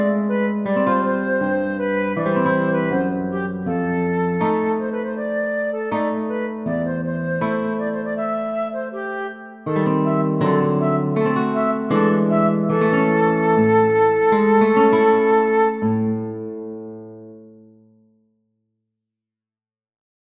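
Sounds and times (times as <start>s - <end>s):
flute playing Romanian folk dance: 0.0s - 16.6s
guitar: 0.0s - 18.1s.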